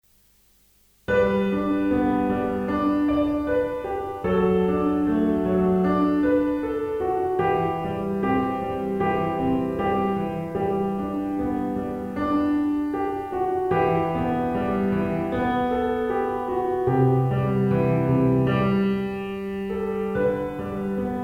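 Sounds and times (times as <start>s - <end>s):
pop piano: 1.1s - 21.2s.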